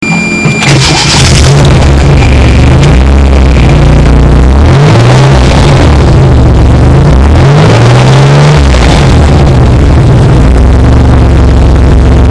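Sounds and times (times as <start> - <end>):
Maserati 228 engine startup heard from inside: 0.2 - 12.3.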